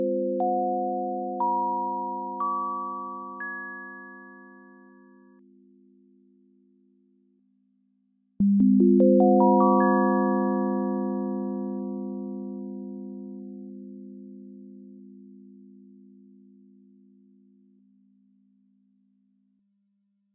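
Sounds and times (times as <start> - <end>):
bell: 0.2 - 5.4, 8.6 - 13.8.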